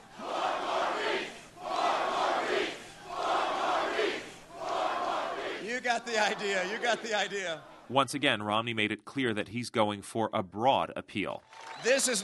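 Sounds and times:
rally crowd chanting: 0.0 - 7.9
speech: 6.0 - 12.2.

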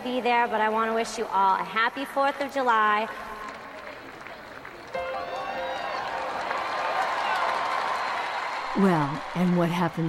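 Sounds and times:
speech: 0.0 - 3.3, 8.8 - 10.0
Red Sox fans cheering and applauding in the stands: 3.4 - 10.0.

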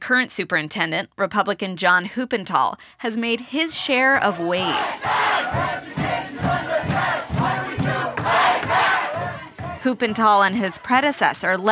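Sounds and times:
speech: 0.1 - 6.6, 9.8 - 11.7
large crowd of student protesters chanting in unison: 3.3 - 11.5.

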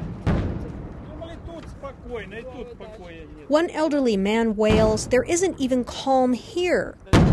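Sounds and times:
Ukrainian missiles fired boom: 0.0 - 1.0
speech: 1.9 - 7.3.

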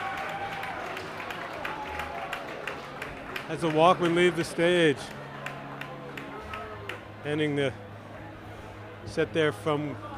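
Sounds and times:
concert crowd cheering and applauding at the 930 Club: 0.0 - 7.1
speech: 3.5 - 5.2, 7.2 - 7.8, 9.0 - 10.1.

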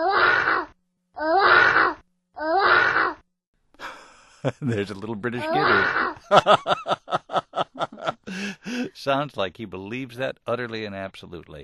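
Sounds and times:
person imitating a lion's roar: 0.0 - 3.2, 5.4 - 6.2
laughter: 3.8 - 9.0
speech: 4.4 - 7.0, 8.3 - 11.6.

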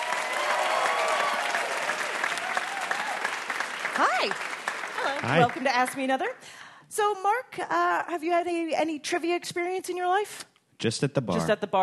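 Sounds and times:
audience applause for game show contestants walking onto the stage: 0.0 - 6.0
speech: 4.2 - 4.5, 5.2 - 11.8.

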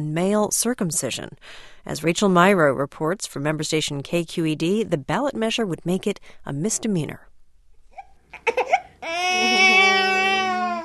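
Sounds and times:
speech: 0.0 - 7.3, 8.4 - 9.9
8-week-old baby boy in San Francisco crying, fussy after his nap: 8.0 - 10.8.

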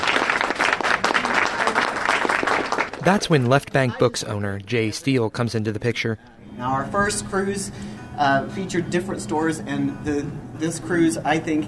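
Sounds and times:
audience applause welcoming a guest who owns a bookstore: 0.0 - 3.8
speech: 3.0 - 11.6.

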